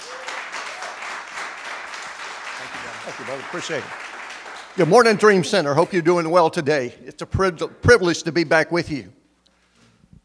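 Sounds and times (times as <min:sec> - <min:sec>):
crowd clapping for a guest speaker at a Dream Center church gathering: 0:00.0 - 0:06.6
speech: 0:03.1 - 0:04.0, 0:04.8 - 0:09.2.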